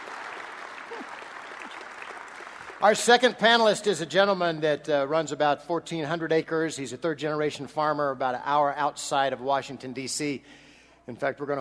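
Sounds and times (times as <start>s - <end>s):
audience applause at an agricultural panel event: 0.0s - 3.2s
speech: 2.8s - 11.6s.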